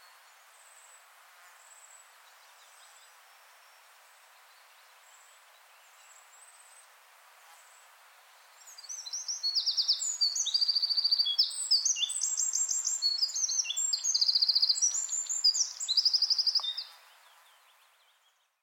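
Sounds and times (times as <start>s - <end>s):
wren singing: 8.6s - 18.5s.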